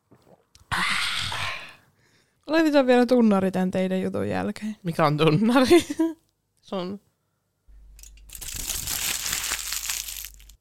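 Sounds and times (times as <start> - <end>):
speech: 2.5 - 7.1
aluminium foil crinkling and crushed: 8.2 - 10.6.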